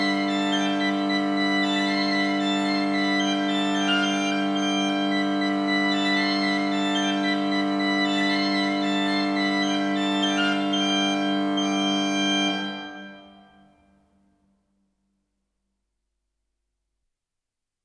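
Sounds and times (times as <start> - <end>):
organ with Dudelsack Quinte stop: 0.0 - 13.4.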